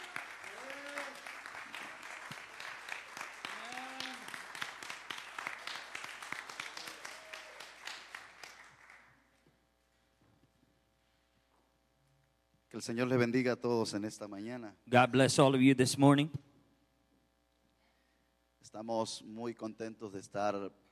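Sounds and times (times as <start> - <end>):
people cheering: 0.0 - 8.5
church congregation clapping for a pastor during a morning service: 0.0 - 9.4
speech: 12.8 - 16.5, 18.8 - 20.9.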